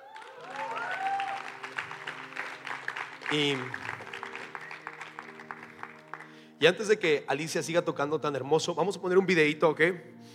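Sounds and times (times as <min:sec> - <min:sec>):
whistles and whoops: 0:00.0 - 0:01.6
audience applause: 0:00.0 - 0:06.4
speech: 0:03.3 - 0:03.8, 0:06.6 - 0:10.1.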